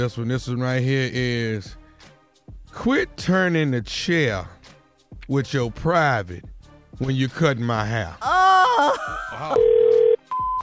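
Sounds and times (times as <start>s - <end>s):
speech: 0.0s - 1.8s, 2.8s - 4.6s, 5.3s - 9.8s
laughter: 8.7s - 9.6s
telephone ringing: 9.6s - 10.6s.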